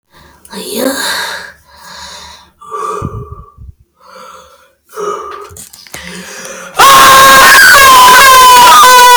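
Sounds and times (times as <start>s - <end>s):
loud scream: 6.8s - 9.1s.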